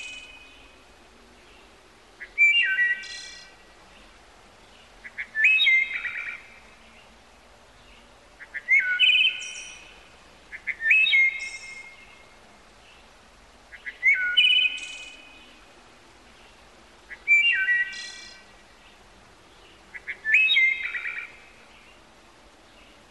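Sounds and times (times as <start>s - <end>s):
faint hiss: 0.0s - 23.0s
bird whistling phrases: 2.3s - 3.4s, 5.1s - 6.4s, 8.4s - 9.8s, 10.6s - 12.0s, 13.8s - 15.2s, 17.2s - 18.4s, 20.0s - 21.3s.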